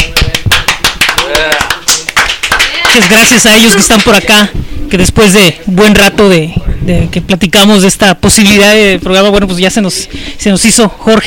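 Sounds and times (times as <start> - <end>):
applause: 0.0 - 4.4
speech: 3.0 - 11.2.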